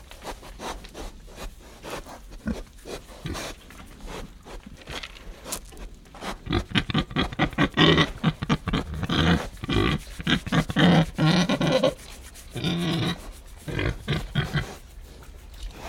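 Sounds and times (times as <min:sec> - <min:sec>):
pig grunting: 0:06.1 - 0:14.9, 0:15.7 - 0:15.8.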